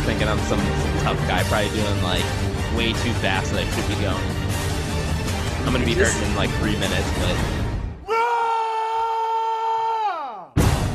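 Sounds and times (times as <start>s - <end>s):
dense noisy music track: 0.0s - 7.5s
speech: 0.1s - 4.4s, 5.6s - 7.6s
loud sustained scream in a music remix: 8.0s - 10.6s.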